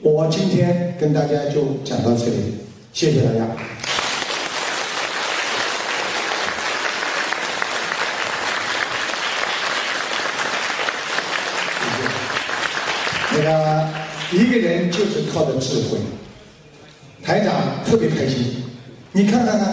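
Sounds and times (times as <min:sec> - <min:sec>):
speech: 0:00.0 - 0:03.9, 0:13.4 - 0:16.2, 0:17.3 - 0:19.7
audience applause at the close of a lecture: 0:03.7 - 0:14.6.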